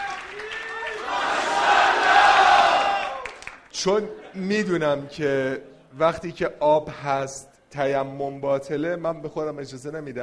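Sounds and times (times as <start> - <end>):
audience applause: 0.0 - 3.6
crowd cheering: 0.0 - 3.6
speech: 3.8 - 10.2.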